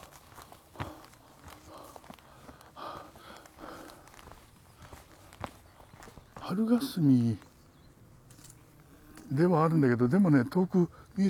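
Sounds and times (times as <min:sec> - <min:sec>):
light breathing: 0:00.0 - 0:06.0
footsteps walking on a hillside path: 0:00.0 - 0:10.0
speech: 0:06.5 - 0:07.5, 0:09.3 - 0:11.2.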